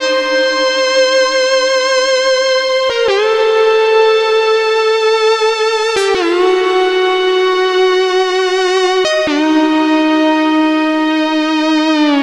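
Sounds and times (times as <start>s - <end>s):
drum and bass keys: 0.0s - 12.2s
fusion synth lead: 0.0s - 12.2s.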